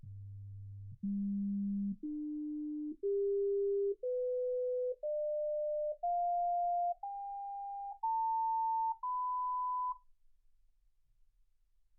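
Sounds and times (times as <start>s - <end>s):
sine tones: 1.0s - 10.1s.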